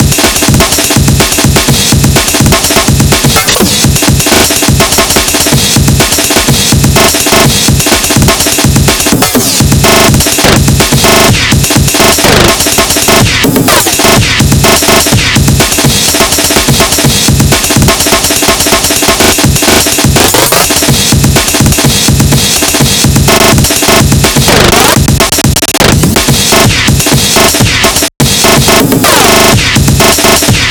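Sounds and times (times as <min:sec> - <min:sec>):
drum breaks: 0:00.0 - 0:30.7.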